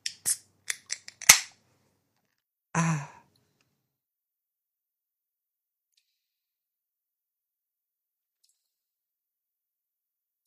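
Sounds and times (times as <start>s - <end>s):
beer can being cracked open: 0.1s - 1.5s.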